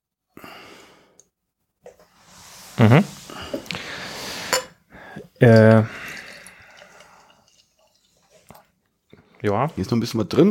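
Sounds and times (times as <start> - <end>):
speech: 2.8 - 3.2, 5.4 - 6.0, 9.4 - 10.4
drink pouring into glass: 5.4 - 8.7.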